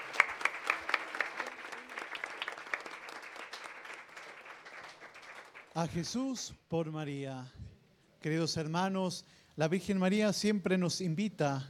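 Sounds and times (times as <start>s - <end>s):
audience applause: 0.0s - 5.8s
speech: 5.8s - 11.6s.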